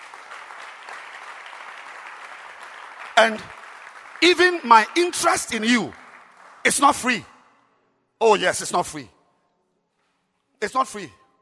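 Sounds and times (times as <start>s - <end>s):
audience applause: 0.0s - 7.2s
speech: 3.2s - 3.6s, 4.2s - 6.0s, 6.6s - 7.3s, 8.2s - 9.2s, 10.6s - 11.2s.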